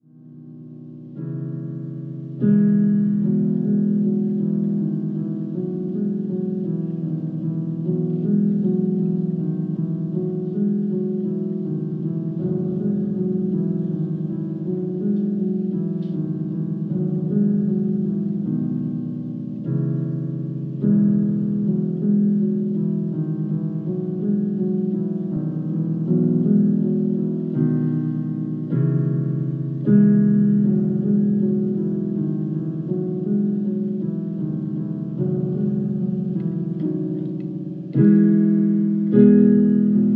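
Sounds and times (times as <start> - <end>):
solo piano: 0.0 - 40.1.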